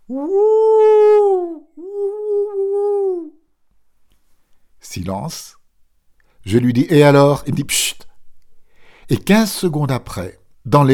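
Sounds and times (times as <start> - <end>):
man imitating a wolf howl: 0.0 - 3.4
speech: 0.1 - 0.8, 5.0 - 5.6, 6.4 - 8.1, 9.1 - 10.9.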